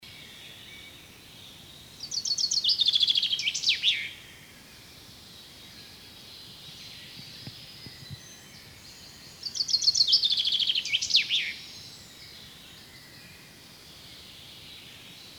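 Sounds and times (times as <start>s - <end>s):
Common chaffinch song Fringilla coelebs: 0.0s - 15.3s.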